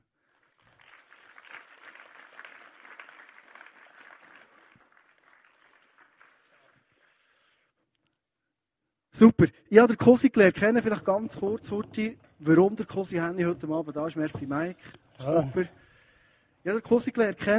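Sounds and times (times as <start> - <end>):
audience applauding: 0.0 - 7.2
speech: 9.2 - 15.8, 16.6 - 17.5.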